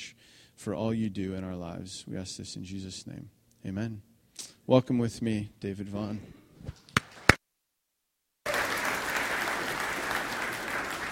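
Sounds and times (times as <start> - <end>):
speech: 0.6 - 4.1, 4.7 - 6.8
audience clapping: 7.0 - 7.4, 8.4 - 11.1.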